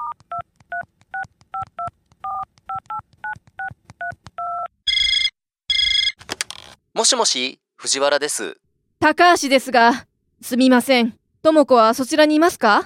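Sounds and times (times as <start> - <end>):
telephone keypad tones dialing a number: 0.0 - 6.2
telephone ringing on the line: 4.9 - 6.2
speech: 7.0 - 12.8.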